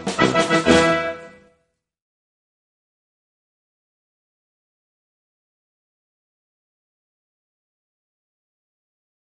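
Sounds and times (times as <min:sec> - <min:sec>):
march music: 0:00.0 - 0:01.6.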